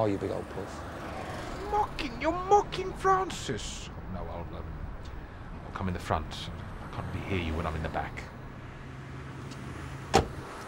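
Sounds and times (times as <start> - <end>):
speech: 0.0 - 1.0, 1.7 - 4.8, 5.8 - 8.3
car door shutting: 10.1 - 10.4.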